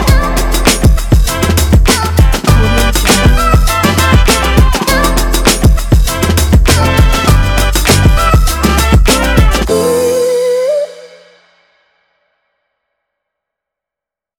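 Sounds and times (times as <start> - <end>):
upbeat energetic summer hip hop music: 0.0 - 10.8.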